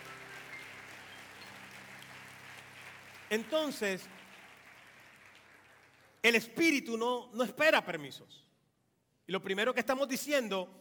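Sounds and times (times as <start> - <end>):
audience applause: 0.0 - 6.2
speech: 3.3 - 4.2, 6.2 - 8.5, 9.3 - 10.7.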